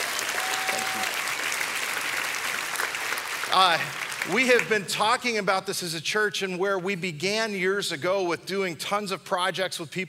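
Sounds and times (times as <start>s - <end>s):
audience applause: 0.0s - 4.8s
speech: 3.5s - 10.0s.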